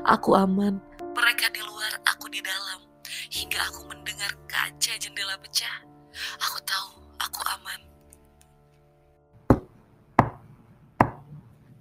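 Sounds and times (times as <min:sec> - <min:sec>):
speech: 0:00.0 - 0:01.6, 0:03.6 - 0:07.9
sharp knocks: 0:09.5 - 0:11.3.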